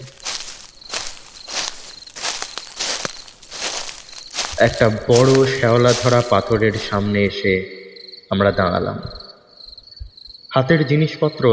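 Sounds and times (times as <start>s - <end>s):
human footsteps through overgrown grass among old graves: 0.0s - 7.4s
speech: 4.6s - 9.2s, 10.6s - 11.5s.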